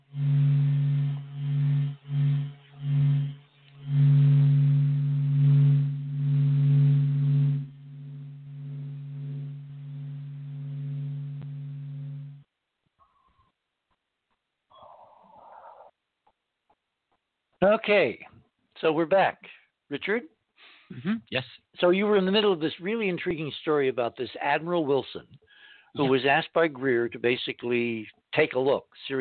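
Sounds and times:
radio waves rendered as droning tone with static: 0.0 - 12.5
speech: 17.8 - 29.1.

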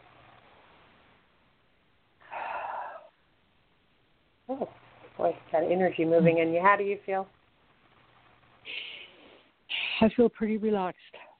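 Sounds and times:
hiss: 0.0 - 11.3
deep breath during a guided relaxation exercise: 2.2 - 3.2
speech: 4.5 - 7.4, 10.0 - 11.2.

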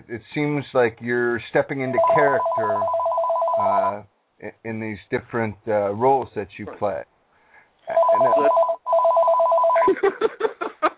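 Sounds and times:
speech: 0.1 - 3.0, 3.6 - 7.1
office work phone ringing with a warbling electronic trill: 1.9 - 4.0, 7.9 - 10.0
laughter: 9.8 - 10.9.

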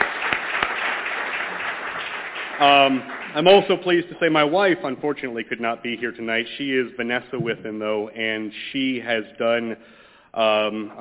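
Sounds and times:
applause for students' outstanding work at an evening event: 0.0 - 4.6
speech: 2.6 - 10.9.

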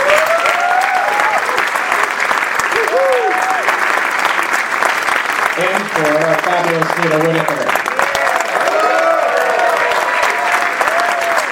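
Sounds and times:
whooping cheers: 0.0 - 1.8, 2.6 - 3.8, 7.9 - 11.5
audience applause: 0.0 - 11.5
speech: 6.0 - 7.8.

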